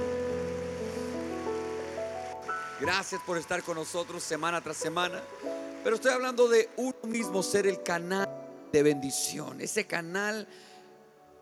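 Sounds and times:
audience applause: 0:00.0 - 0:07.2
speech: 0:02.8 - 0:10.7.

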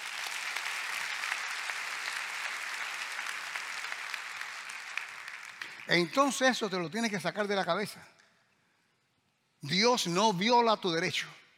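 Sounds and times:
audience applause: 0:00.0 - 0:06.6
speech: 0:05.9 - 0:08.2, 0:09.6 - 0:11.4.

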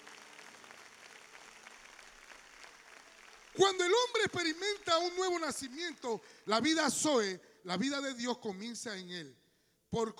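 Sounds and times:
audience applause: 0:00.0 - 0:06.5
speech: 0:03.6 - 0:10.1.

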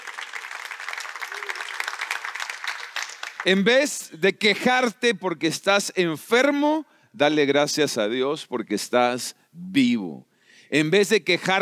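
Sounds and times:
audience applauding: 0:00.0 - 0:03.7
speech: 0:03.4 - 0:11.6.

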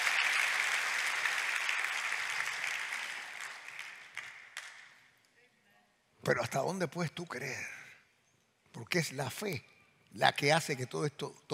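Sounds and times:
applause: 0:00.0 - 0:05.2
speech: 0:06.3 - 0:07.8, 0:08.7 - 0:11.5.

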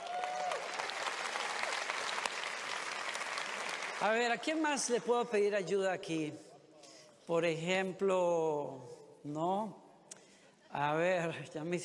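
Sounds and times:
audience applause: 0:00.0 - 0:04.3
speech: 0:04.0 - 0:06.5, 0:07.3 - 0:09.8, 0:10.7 - 0:11.8.

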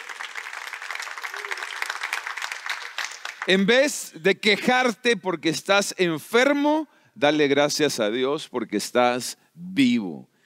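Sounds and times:
applause: 0:00.0 - 0:03.9
speech: 0:03.4 - 0:10.3.

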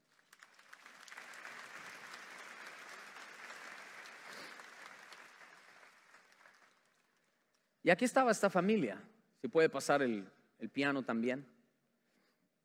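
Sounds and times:
audience applause: 0:00.0 - 0:07.3
speech: 0:07.9 - 0:11.5.

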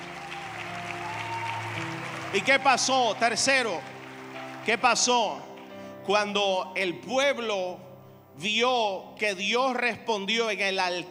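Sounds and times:
audience applause: 0:00.0 - 0:05.9
speech: 0:02.3 - 0:03.9, 0:04.7 - 0:05.5, 0:06.1 - 0:11.0.

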